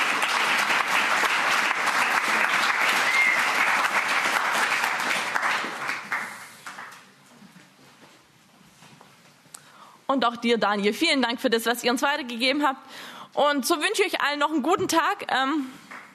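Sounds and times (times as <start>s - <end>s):
audience applause: 0.0s - 7.1s
speech: 10.1s - 15.8s.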